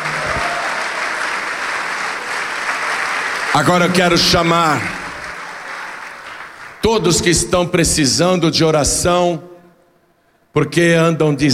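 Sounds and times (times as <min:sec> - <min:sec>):
audience applauding: 0:00.0 - 0:07.4
speech: 0:03.6 - 0:05.0, 0:06.9 - 0:09.5, 0:10.6 - 0:11.5.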